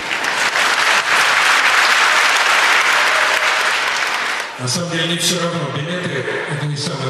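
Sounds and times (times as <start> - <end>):
audience applause: 0.0 - 4.6
speech: 4.6 - 7.0.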